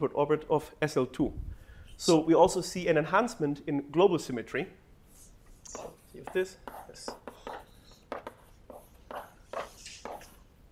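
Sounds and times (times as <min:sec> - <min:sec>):
speech: 0:00.0 - 0:04.8, 0:05.7 - 0:07.3
writing on a board during a mathematics lecture: 0:05.1 - 0:10.4.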